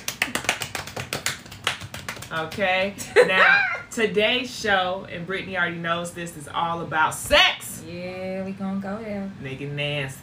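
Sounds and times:
clapping: 0:00.0 - 0:02.7
speech: 0:02.3 - 0:10.2.

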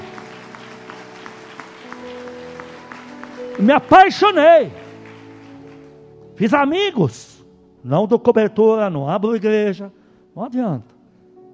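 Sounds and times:
audience applauding: 0:00.0 - 0:06.4
speech: 0:03.6 - 0:04.8, 0:06.4 - 0:10.9.

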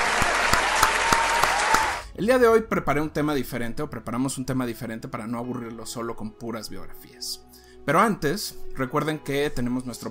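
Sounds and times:
applause: 0:00.0 - 0:02.1
speech: 0:02.2 - 0:10.1.

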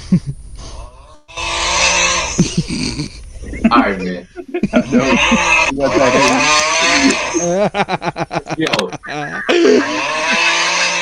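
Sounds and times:
speech: 0:00.1 - 0:00.4, 0:02.4 - 0:11.0
person snoring: 0:00.7 - 0:03.2, 0:04.8 - 0:07.5, 0:09.5 - 0:11.0
laughter: 0:02.4 - 0:10.7.

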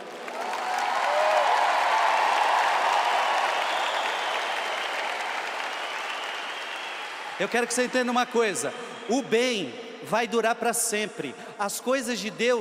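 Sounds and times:
crowd applause: 0:00.0 - 0:08.2
speech: 0:07.4 - 0:12.6.

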